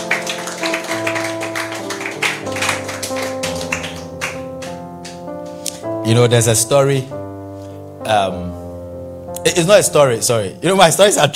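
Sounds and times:
audience clapping hands: 0.0s - 5.3s
speech: 6.1s - 7.2s, 8.1s - 8.6s, 9.4s - 11.3s.

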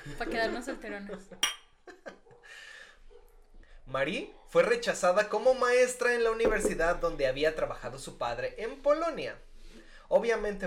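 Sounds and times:
speech: 0.0s - 1.6s, 3.9s - 9.5s, 10.1s - 10.6s
glasses clinking in a toast: 1.4s - 1.8s.

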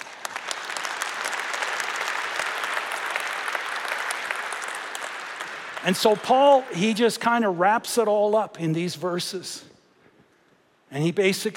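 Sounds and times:
audience applause: 0.0s - 6.8s
speech: 5.8s - 9.7s, 10.9s - 11.5s.

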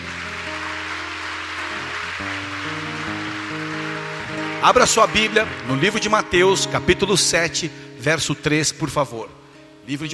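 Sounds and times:
audience applauding: 0.0s - 6.9s
sustained keyboard chords: 0.0s - 10.1s
speech: 4.6s - 10.1s.

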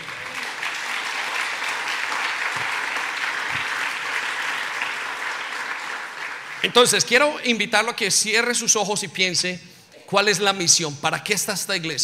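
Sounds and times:
crowd clapping: 0.0s - 7.4s
speech: 6.6s - 12.0s.

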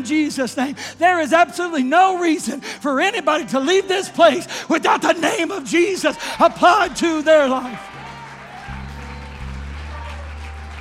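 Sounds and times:
speech: 0.0s - 7.9s
audience clapping: 6.2s - 10.7s
deep sustained bass or organ notes: 7.8s - 10.7s.

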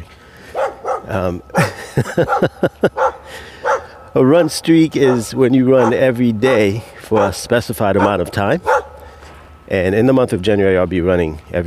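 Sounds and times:
dog barking: 0.5s - 1.1s, 2.2s - 4.0s, 5.0s - 7.4s, 8.0s - 9.1s
speech: 1.1s - 3.5s, 4.2s - 8.8s, 9.7s - 11.6s
laughter: 1.4s - 3.4s.

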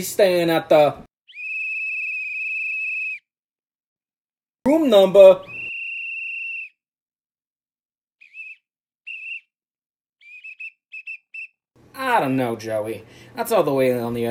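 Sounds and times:
speech: 0.0s - 1.1s, 4.7s - 5.5s, 12.2s - 14.3s
shrill whistle blasts: 1.3s - 3.3s, 5.4s - 6.8s, 8.2s - 9.6s, 10.2s - 11.6s.

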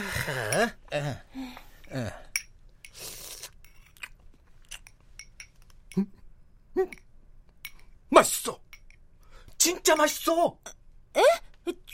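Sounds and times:
speech: 0.2s - 2.2s, 9.9s - 11.3s
food crunching and chewing: 3.1s - 5.0s.

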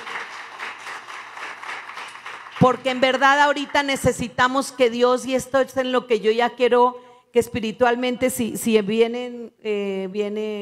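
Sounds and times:
audience applause: 0.0s - 3.1s
speech: 2.6s - 10.6s.

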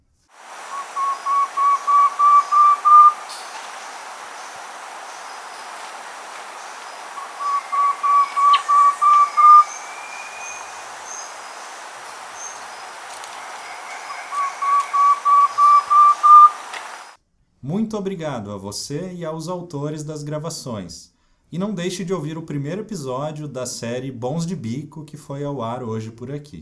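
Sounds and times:
Myrmotherula simplex antwren song: 0.6s - 17.2s
speech: 17.8s - 26.6s.

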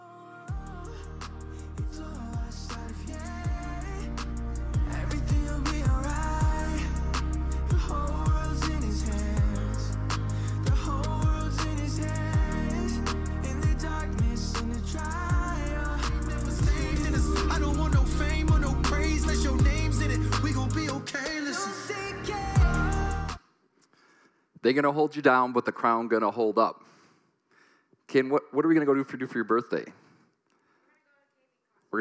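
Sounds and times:
hip-hop song playing loudly: 0.0s - 23.4s
speech: 24.7s - 26.9s, 28.1s - 30.0s.

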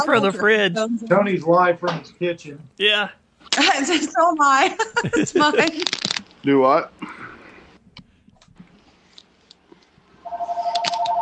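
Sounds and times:
speech: 0.0s - 7.2s
laughter: 3.6s - 6.0s
incoming phone call ringing: 10.2s - 11.2s.

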